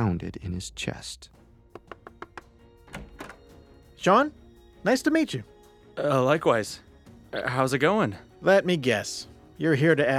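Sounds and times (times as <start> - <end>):
speech: 0.0 - 1.4, 4.0 - 10.1
knocking on a door: 1.7 - 3.4.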